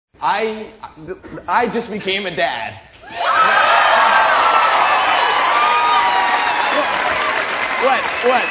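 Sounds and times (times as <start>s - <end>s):
speech: 0.2s - 3.7s, 7.8s - 8.5s
whoops and shouts: 3.0s - 8.5s
crowd applauding: 3.1s - 8.5s.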